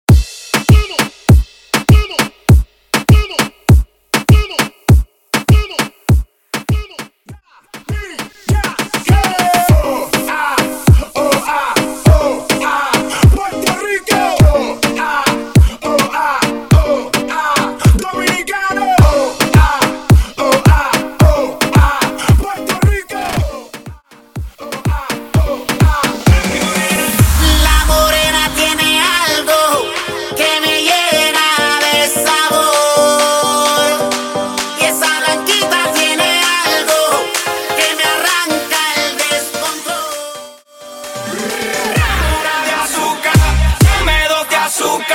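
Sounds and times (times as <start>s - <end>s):
reggaeton to house transition: 0.1s - 45.1s.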